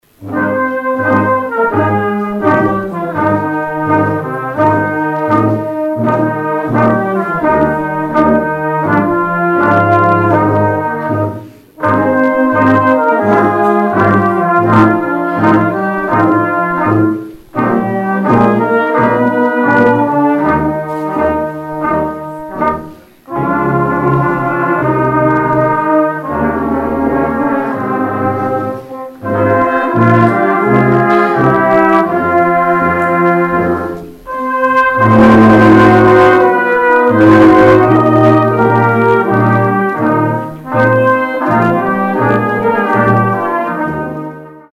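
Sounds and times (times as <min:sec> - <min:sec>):
band playing an outro: 0:00.0 - 0:44.7.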